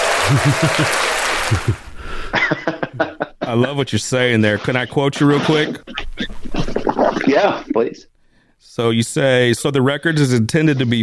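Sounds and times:
audience applause: 0.0 - 2.2
laughter: 0.0 - 3.8, 4.4 - 7.9
speech: 0.3 - 1.8, 2.4 - 8.1, 8.7 - 11.0.

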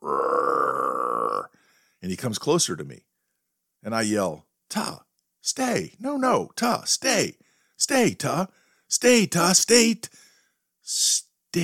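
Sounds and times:
person imitating animal growl: 0.0 - 1.5
speech: 2.0 - 3.1, 3.8 - 10.2, 10.9 - 11.6.

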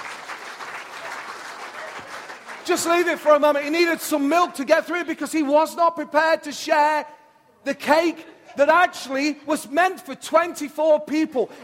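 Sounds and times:
crowd clapping: 0.0 - 3.8
speech: 2.7 - 11.6.

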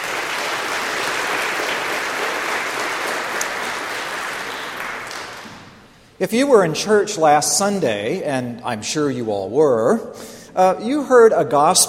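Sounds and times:
audience applause: 0.0 - 5.8
speech: 6.2 - 11.8.

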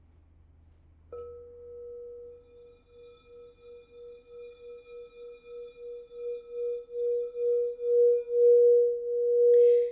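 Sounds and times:
crystal singing bowl ringing: 1.2 - 9.9.

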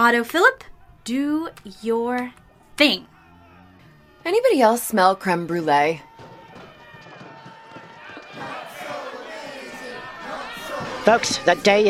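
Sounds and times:
speech: 0.0 - 3.1, 4.2 - 6.1, 11.1 - 11.8
angry crowd shouting: 2.4 - 11.8.

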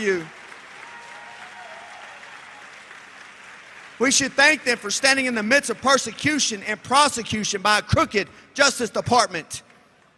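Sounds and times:
speech: 0.0 - 0.4, 4.0 - 9.7
crowd applause: 0.0 - 6.0.

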